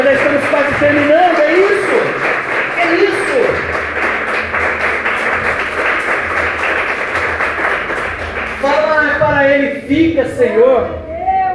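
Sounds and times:
audience clapping: 0.0 - 9.8
speech: 0.8 - 1.3, 9.9 - 11.0.

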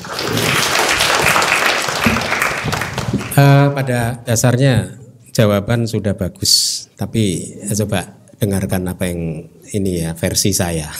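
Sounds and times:
audience applause: 0.0 - 3.5
speech: 3.4 - 10.9.

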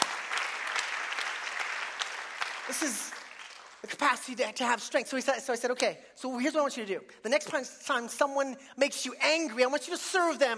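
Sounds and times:
audience applause: 0.0 - 3.9
speech: 2.7 - 3.2, 3.8 - 10.5.

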